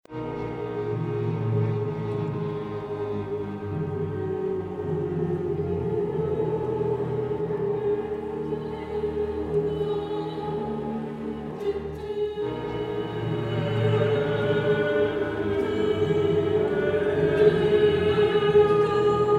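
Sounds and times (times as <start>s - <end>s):
strings: 0.0s - 19.3s
choir: 0.1s - 19.3s.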